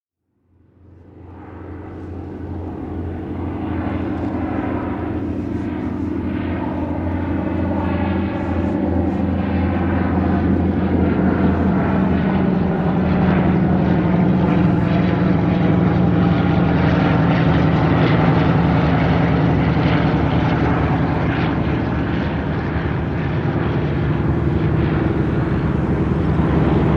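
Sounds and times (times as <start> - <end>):
propeller plane flying over: 0.4 - 26.9.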